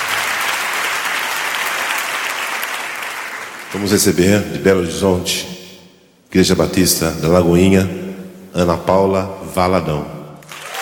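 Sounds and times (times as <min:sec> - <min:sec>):
audience applause: 0:00.0 - 0:03.9, 0:10.4 - 0:10.8
speech: 0:03.7 - 0:05.5, 0:06.3 - 0:10.2.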